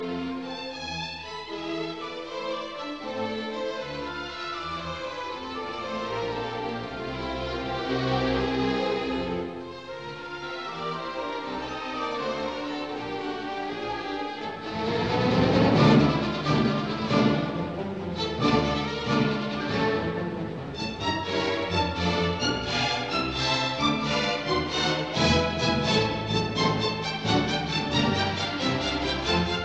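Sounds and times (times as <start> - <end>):
symphony in D minor scherzo: 0.0 - 29.6.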